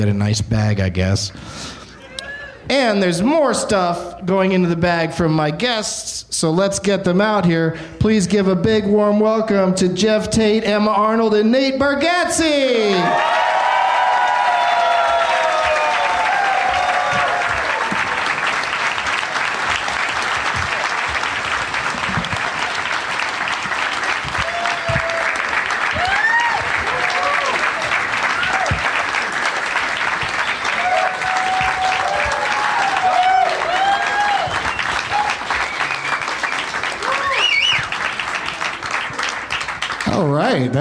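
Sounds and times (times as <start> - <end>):
speech: 0.0 - 1.8, 2.7 - 13.4
audience whoops and cheers: 2.0 - 2.7, 12.8 - 18.3, 24.3 - 29.0, 30.3 - 38.0
long audience applause: 12.9 - 40.4.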